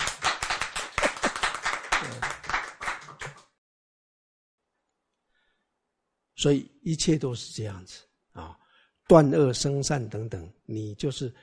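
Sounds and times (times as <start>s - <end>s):
audience clapping: 0.0s - 3.6s
speech: 2.0s - 2.3s, 6.4s - 11.4s.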